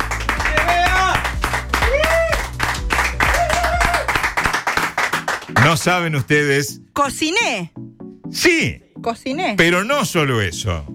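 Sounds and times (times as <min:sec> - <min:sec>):
crowd applause: 0:00.0 - 0:05.8
voices whooping and cheering: 0:00.5 - 0:04.2
speech: 0:05.7 - 0:10.9.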